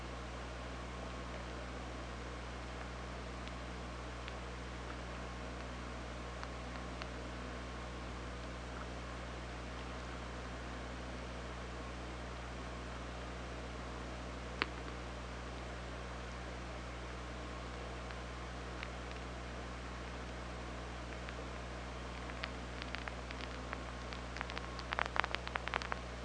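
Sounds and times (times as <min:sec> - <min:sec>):
hydrophone hiss and low hum: 0:00.0 - 0:26.2
killer whale clicks: 0:22.1 - 0:26.0.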